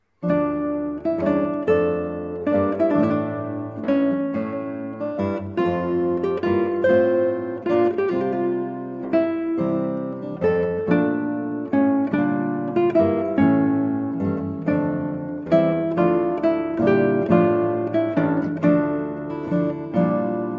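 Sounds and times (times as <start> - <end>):
baroque siciliana played on guitar: 0.0 - 20.5.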